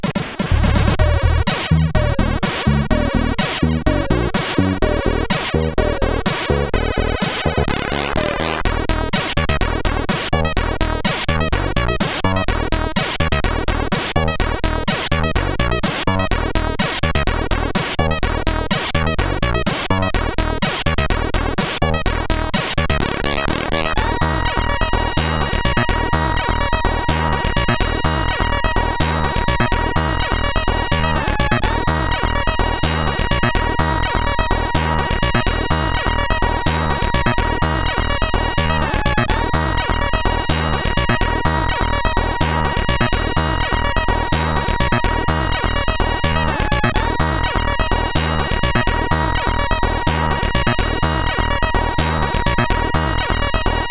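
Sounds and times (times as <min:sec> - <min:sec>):
electro polka music: 0:00.0 - 0:53.9.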